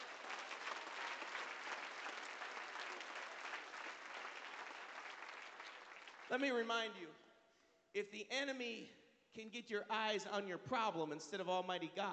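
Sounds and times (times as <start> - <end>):
audience clapping: 0.0 - 6.9
speech: 6.3 - 7.2, 7.9 - 12.1.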